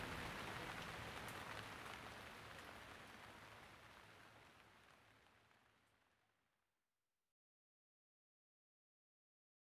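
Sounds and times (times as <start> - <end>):
rain: 0.0 - 6.1.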